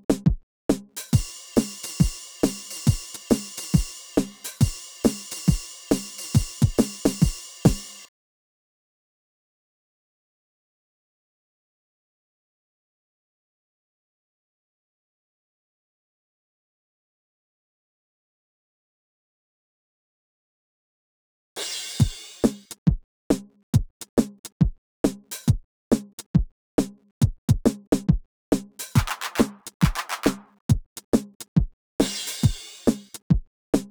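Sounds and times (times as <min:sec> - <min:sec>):
drums: 0:00.0 - 0:08.1, 0:21.6 - 0:33.9.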